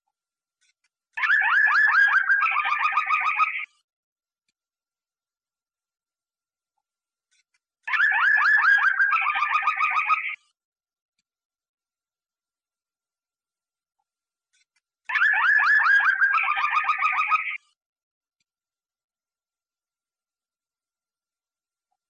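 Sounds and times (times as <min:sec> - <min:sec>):
canary trilling: 0:01.2 - 0:03.6, 0:07.9 - 0:10.4, 0:15.1 - 0:17.6.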